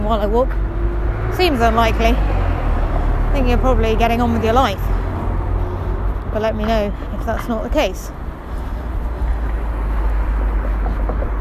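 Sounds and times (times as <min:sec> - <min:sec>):
street traffic while crossing tram lines: 0:00.0 - 0:11.3
speech: 0:00.1 - 0:02.4, 0:03.4 - 0:04.9, 0:06.3 - 0:08.2.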